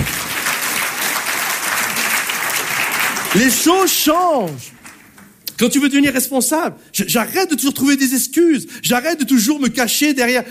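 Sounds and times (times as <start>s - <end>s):
crowd clapping: 0.0s - 5.4s
speech: 3.3s - 4.8s, 5.6s - 10.4s.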